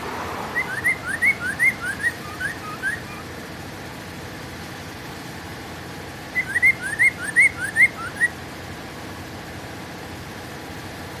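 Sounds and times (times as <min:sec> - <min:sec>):
bird song of upslurred whistles: 0:00.5 - 0:03.3, 0:06.3 - 0:08.4.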